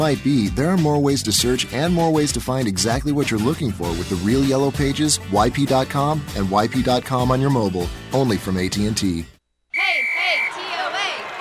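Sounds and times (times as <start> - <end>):
speech: 0.0 - 9.3
steady shrill tone: 9.7 - 10.6
voices cheering for Tennessee Orthopedic Alliance: 9.8 - 11.4.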